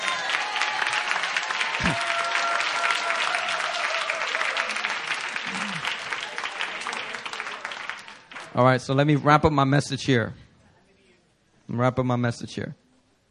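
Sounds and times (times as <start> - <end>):
audience clapping: 0.0 - 8.8
speech: 8.6 - 10.4, 11.7 - 12.8.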